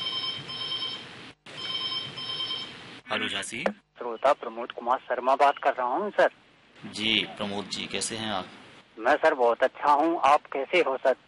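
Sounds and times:
telephone ringing for a caller to a radio show: 1.6 - 2.7
speech: 3.1 - 11.2.

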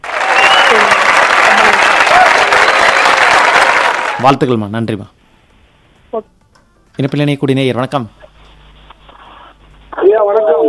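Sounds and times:
audience applause: 0.0 - 4.3
speech: 4.2 - 5.2, 6.1 - 6.3, 7.0 - 8.2.

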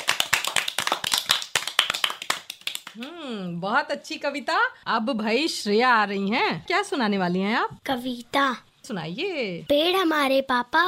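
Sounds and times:
loud applause from audience: 0.0 - 2.9
speech: 3.0 - 10.8.

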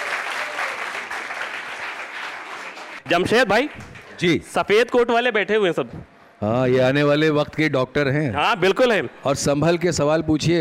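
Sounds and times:
loud applause: 0.0 - 4.2
speech: 3.1 - 10.6.

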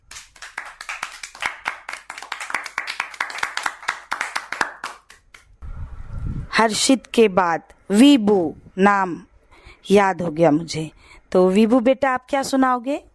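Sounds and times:
audience clapping: 0.0 - 5.5
speech: 6.6 - 13.1.

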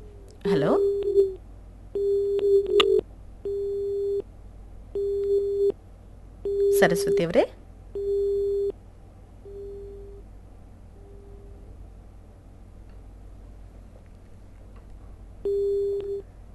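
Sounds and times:
speech: 0.4 - 1.4, 6.8 - 7.6
telephone busy tone on a disrupted call: 0.8 - 1.4, 2.0 - 4.2, 5.0 - 5.8, 6.5 - 7.3, 8.0 - 8.8, 9.5 - 10.2, 15.5 - 16.2.

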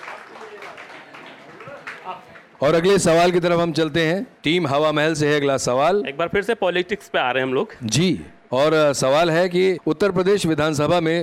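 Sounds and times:
quiz show audience applauding: 0.0 - 2.6
speech: 2.1 - 11.2.

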